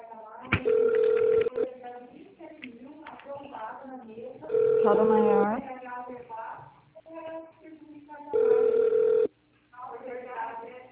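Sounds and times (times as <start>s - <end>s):
electronic phone ring tone while a call is transferred: 0.6s - 1.6s, 4.5s - 5.5s, 8.3s - 9.3s
person speaking: 4.8s - 5.6s.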